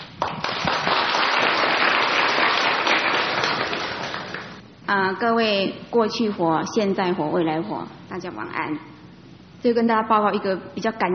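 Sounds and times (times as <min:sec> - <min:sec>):
audience applause: 0:00.0 - 0:04.6
speech: 0:04.9 - 0:08.9, 0:09.6 - 0:11.1.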